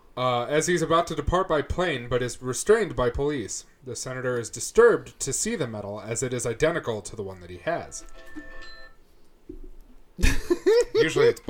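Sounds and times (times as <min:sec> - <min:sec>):
speech: 0:00.2 - 0:08.7, 0:11.0 - 0:11.4
electronic alarm chime: 0:08.1 - 0:09.0.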